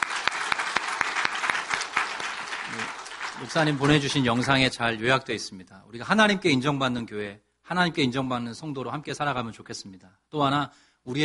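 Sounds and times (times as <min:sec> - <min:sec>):
audience applause: 0:00.0 - 0:04.4
speech: 0:02.8 - 0:11.2.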